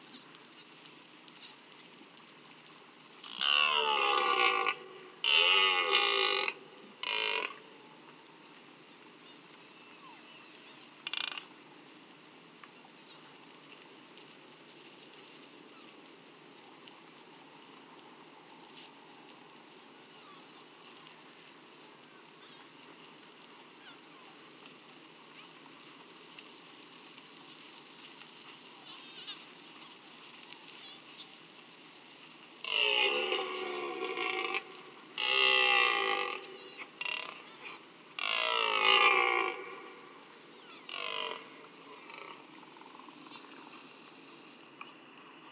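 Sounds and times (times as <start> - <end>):
red deer calling: 3.2 - 7.7, 32.6 - 43.8.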